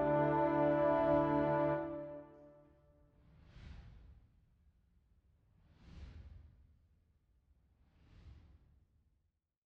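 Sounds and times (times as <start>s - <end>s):
dragon background music: 0.0s - 2.6s.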